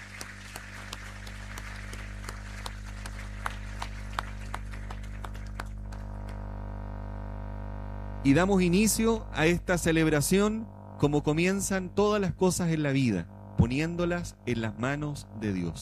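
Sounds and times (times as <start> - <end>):
scattered audience applause: 0.0 - 6.4
steady low room hum: 0.0 - 15.8
speech: 8.3 - 15.8.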